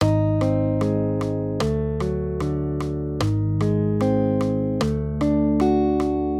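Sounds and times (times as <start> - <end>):
major triads: 0.0 - 6.3.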